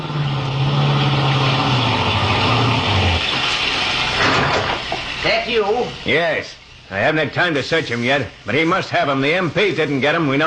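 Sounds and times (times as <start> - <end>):
car engine slowing and pulling to a stop: 0.0 - 5.2
road noise: 0.0 - 5.2
speech: 5.5 - 10.4.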